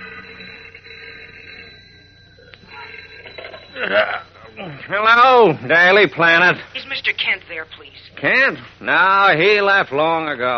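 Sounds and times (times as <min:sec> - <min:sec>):
old telephone bell ringing: 0:00.0 - 0:05.4
speech: 0:03.8 - 0:10.5.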